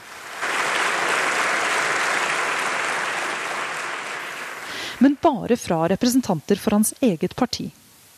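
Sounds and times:
sustained crowd applause: 0:00.0 - 0:05.2
speech: 0:05.0 - 0:07.8.

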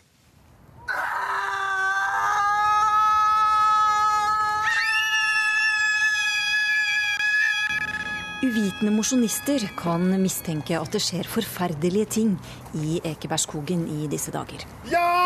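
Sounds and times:
hundreds of people screaming in a forest: 0:00.9 - 0:11.3
speech: 0:08.4 - 0:15.2.

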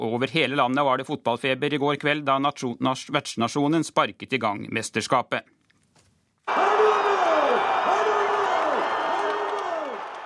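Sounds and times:
speech: 0:00.0 - 0:05.6
crowds cheering after football goal: 0:06.5 - 0:10.2.

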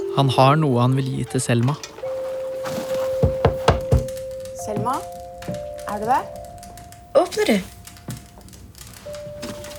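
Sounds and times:
speech: 0:00.2 - 0:01.9, 0:04.8 - 0:06.4, 0:07.2 - 0:07.8
knocking on a door: 0:03.2 - 0:05.7.

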